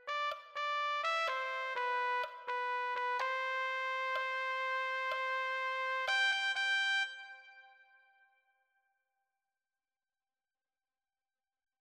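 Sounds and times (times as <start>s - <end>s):
trumpet: 0.0s - 7.8s.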